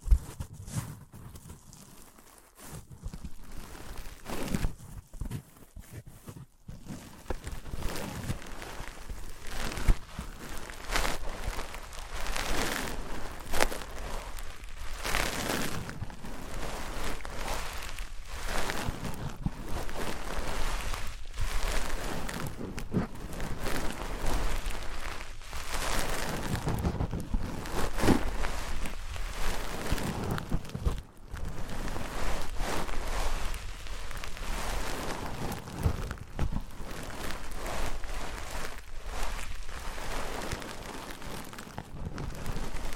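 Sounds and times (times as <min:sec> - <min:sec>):
wood, cork, sponge, foam, glass and plastic rubbed together: 0:00.0 - 0:42.9.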